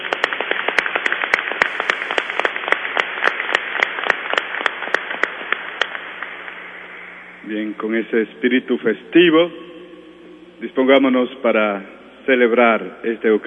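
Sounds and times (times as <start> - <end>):
audience applauding: 0.0 - 6.6
speech: 7.5 - 9.6, 10.6 - 13.4.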